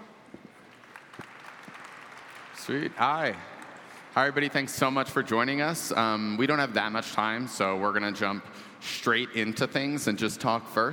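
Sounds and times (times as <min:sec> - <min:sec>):
faint applause from a conference audience welcoming a panel: 0:00.6 - 0:04.2
speech: 0:02.6 - 0:03.5, 0:04.2 - 0:10.9.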